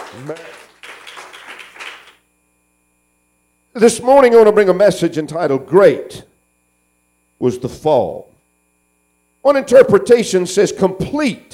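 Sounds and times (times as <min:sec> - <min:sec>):
audience clapping hands in praise: 0:00.0 - 0:02.3
speech: 0:00.1 - 0:00.7, 0:03.8 - 0:06.3, 0:07.4 - 0:08.3, 0:09.4 - 0:11.5.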